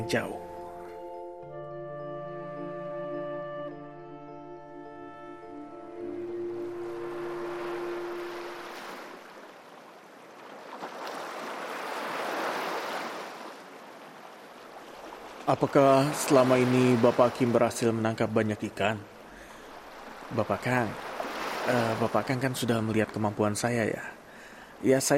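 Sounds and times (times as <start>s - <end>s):
speech: 0.0s - 0.4s, 15.5s - 19.2s, 20.3s - 24.2s, 24.8s - 25.1s
waves: 6.0s - 25.1s
rain falling on the sea: 8.7s - 25.1s.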